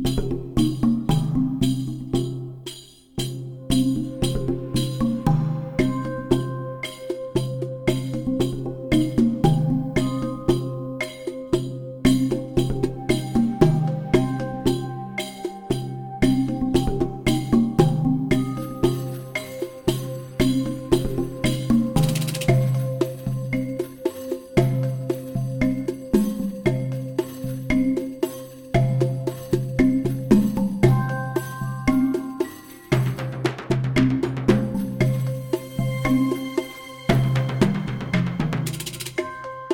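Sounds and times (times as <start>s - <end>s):
upbeat music: 0.2s - 39.7s.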